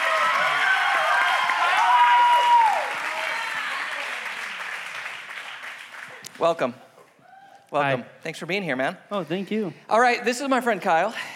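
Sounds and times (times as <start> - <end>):
audience applause welcoming a guest onto the stage: 0.0 - 6.6
speech: 6.4 - 6.9, 7.7 - 11.3.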